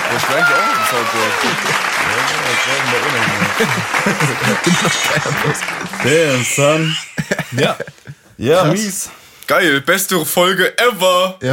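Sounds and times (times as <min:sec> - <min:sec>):
applause: 0:00.0 - 0:07.3
people talking and laughing: 0:00.0 - 0:09.0
speech: 0:00.1 - 0:11.5.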